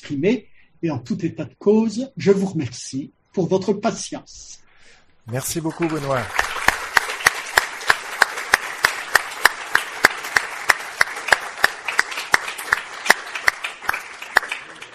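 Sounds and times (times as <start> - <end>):
speech: 0.0 - 4.6, 5.3 - 6.4
applause: 5.3 - 14.9.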